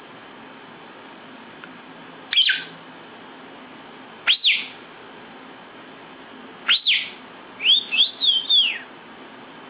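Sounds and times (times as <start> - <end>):
lovebird giving shrill sharp chirps: 2.3 - 2.7, 4.2 - 4.8, 6.7 - 8.9.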